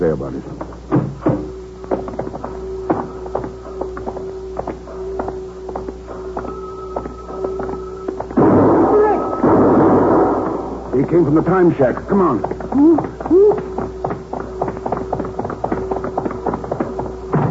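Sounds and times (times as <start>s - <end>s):
speech: 0.0s - 0.7s, 11.3s - 13.7s
mechanical hum: 0.0s - 17.4s
gunshot: 8.4s - 10.9s.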